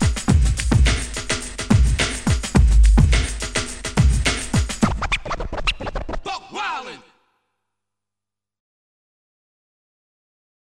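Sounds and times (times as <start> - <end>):
scratching over beats: 0.0 - 6.2.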